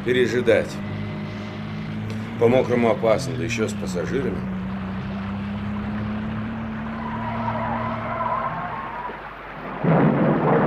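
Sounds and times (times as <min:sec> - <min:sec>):
speech: 0:00.0 - 0:00.9, 0:02.4 - 0:04.5
low mechanical drone: 0:00.0 - 0:10.6
thunder crack and rumble from a thunderstorm: 0:09.5 - 0:10.6.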